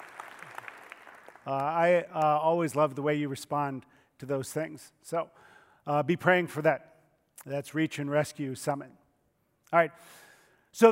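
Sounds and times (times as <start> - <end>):
audience applause: 0.0 - 1.8
speech: 1.5 - 9.0, 9.7 - 10.2.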